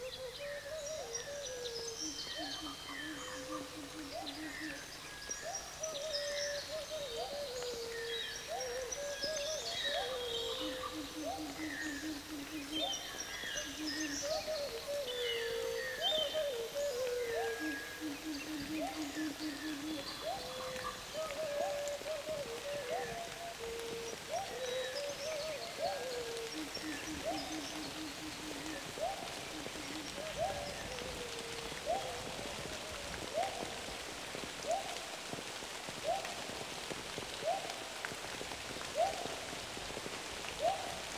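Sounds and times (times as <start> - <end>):
rainforest ambience: 0.0 - 41.1.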